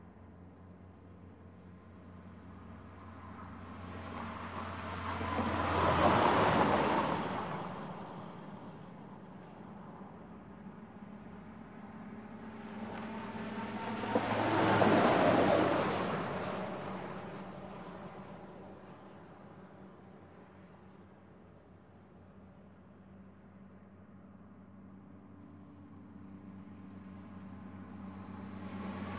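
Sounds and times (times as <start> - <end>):
light highway traffic of cars and trucks passing: 3.2 - 9.4, 10.5 - 19.2, 27.9 - 29.1.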